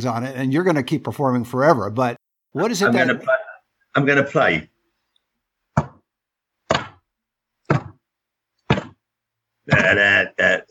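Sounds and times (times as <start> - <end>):
speech: 0.0 - 4.7, 9.7 - 10.7
drum skin hits: 6.7 - 7.1, 7.7 - 8.0, 8.7 - 9.0.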